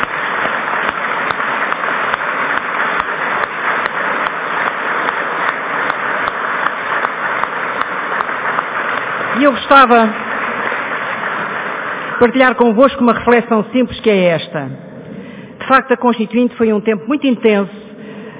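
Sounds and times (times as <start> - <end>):
crowd clapping: 0.0 - 13.5
speech: 9.5 - 10.2, 12.2 - 14.8, 15.7 - 17.8.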